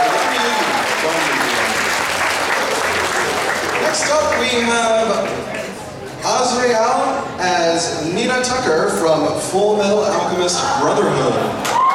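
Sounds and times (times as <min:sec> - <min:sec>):
audience applause: 0:00.0 - 0:05.8
speech: 0:04.4 - 0:05.6, 0:06.2 - 0:11.8.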